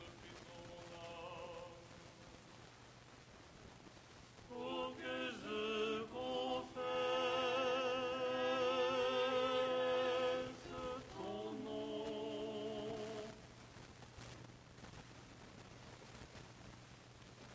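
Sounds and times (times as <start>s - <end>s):
tenor chanting Tone 8 lucernarium stichera: 0.0s - 1.8s, 4.5s - 13.4s.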